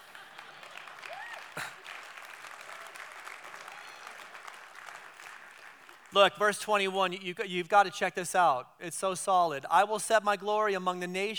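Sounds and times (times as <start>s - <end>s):
audience applause: 0.0s - 6.2s
person whooping: 1.1s - 1.8s
speech: 6.1s - 11.3s.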